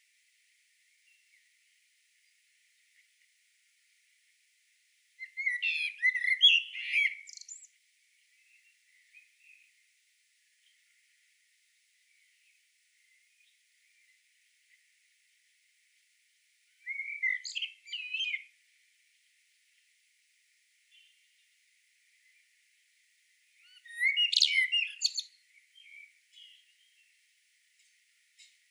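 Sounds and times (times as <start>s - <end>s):
common blackbird singing warbled phrases: 0.9s - 3.2s, 5.2s - 11.2s, 11.8s - 14.9s, 16.6s - 18.6s, 20.8s - 22.6s, 23.5s - 28.6s.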